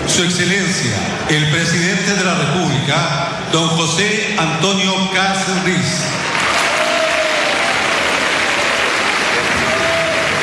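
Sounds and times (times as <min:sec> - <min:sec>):
speech: 0:00.1 - 0:06.2
applause in a parliament hall: 0:06.2 - 0:10.4.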